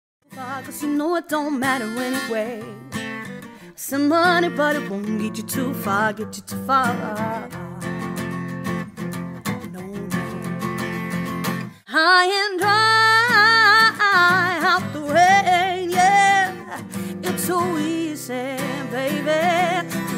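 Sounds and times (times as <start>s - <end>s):
acoustic duo playing a cover: 1.6s - 11.8s, 12.6s - 20.1s.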